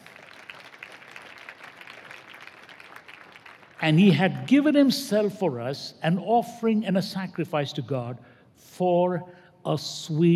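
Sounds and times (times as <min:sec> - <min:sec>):
audience clapping: 0:00.0 - 0:04.1
speech: 0:03.8 - 0:10.3.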